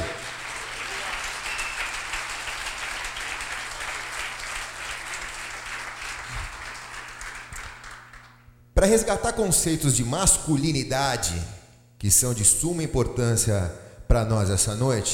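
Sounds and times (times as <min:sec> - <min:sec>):
audience applause: 0:00.0 - 0:08.4
speech: 0:08.8 - 0:15.1.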